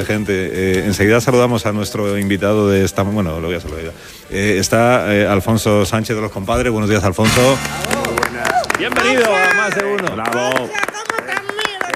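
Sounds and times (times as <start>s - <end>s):
speech: 0.0s - 8.0s, 8.8s - 10.8s
rhythmic flamenco hand clapping: 7.2s - 11.9s.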